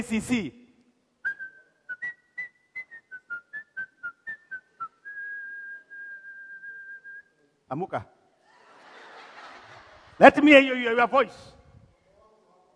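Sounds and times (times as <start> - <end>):
speech: 0.0 - 0.6, 7.7 - 8.2, 10.2 - 11.6
person whistling to call sheep: 1.2 - 7.3
laughter: 8.4 - 10.8.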